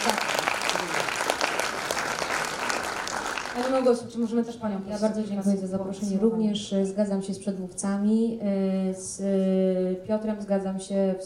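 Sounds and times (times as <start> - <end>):
audience applause: 0.0 - 3.9
speech: 3.6 - 11.2.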